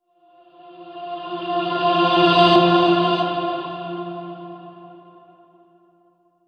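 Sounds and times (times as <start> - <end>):
reversed heavenly choir voices: 0.4 - 5.5.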